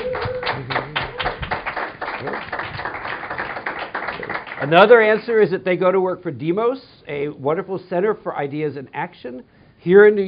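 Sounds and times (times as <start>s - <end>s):
audience applause welcoming a New York City Council member: 0.0s - 4.8s
speech: 4.6s - 10.2s.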